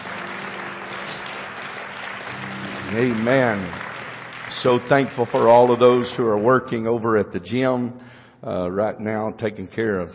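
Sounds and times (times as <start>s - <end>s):
audience hand clapping: 0.0s - 6.6s
speech: 2.9s - 3.8s, 4.5s - 10.1s.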